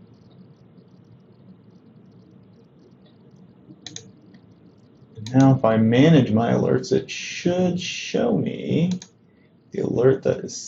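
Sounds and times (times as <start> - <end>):
steady low hiss: 0.0 - 10.6
mouse click on an OK button: 3.0 - 4.4, 8.9 - 9.2
speech: 5.3 - 9.1, 9.7 - 10.6.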